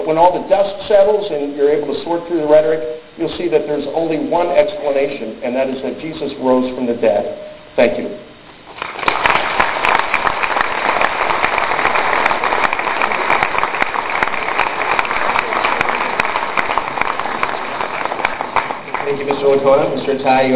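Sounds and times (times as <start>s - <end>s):
speech: 0.1s - 8.3s, 19.1s - 20.5s
audience applause: 8.7s - 20.0s.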